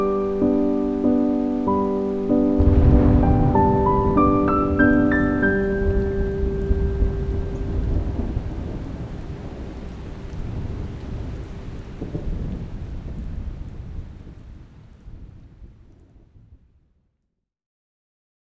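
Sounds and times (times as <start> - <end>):
piano: 0.0 - 10.1
thunderstorm: 2.3 - 16.7.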